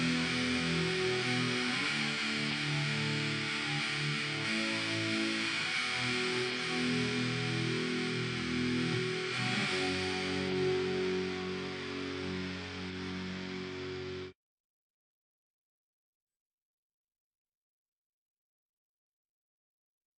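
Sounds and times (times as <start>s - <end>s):
guitar: 0.0s - 14.4s.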